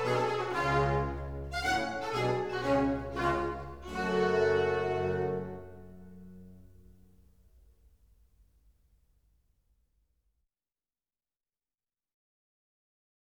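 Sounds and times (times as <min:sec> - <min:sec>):
oboe concerto in G minor allegro: 0:00.0 - 0:06.9.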